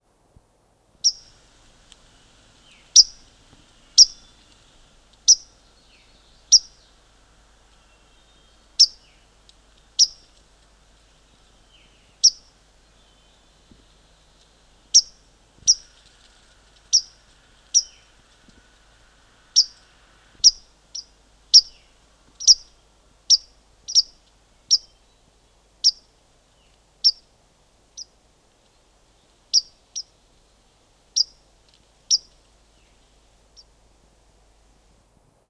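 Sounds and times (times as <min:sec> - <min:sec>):
bird: 0:01.0 - 0:01.4, 0:02.6 - 0:10.4, 0:11.2 - 0:18.7, 0:19.5 - 0:27.3, 0:32.1 - 0:33.7.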